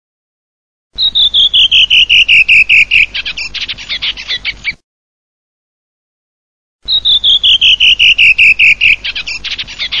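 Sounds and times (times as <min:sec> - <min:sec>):
redwing song: 0:01.0 - 0:04.8, 0:06.8 - 0:09.9.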